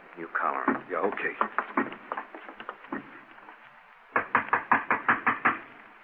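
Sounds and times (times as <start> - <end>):
speech: 0.2 - 1.9
knocking on a door: 0.7 - 3.2, 4.1 - 5.7.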